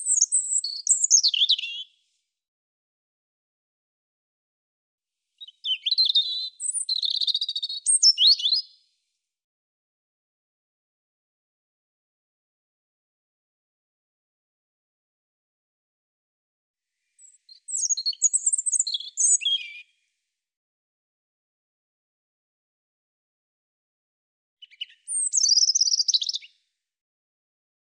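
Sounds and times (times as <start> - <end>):
European robin singing: 0.0 - 1.9, 5.4 - 8.8, 17.2 - 19.9, 24.6 - 26.5.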